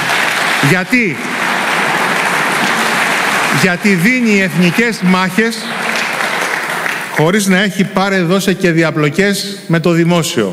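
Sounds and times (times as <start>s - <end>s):
audience applause: 0.0s - 7.6s
speech: 0.6s - 1.3s, 3.5s - 5.8s, 7.2s - 10.5s.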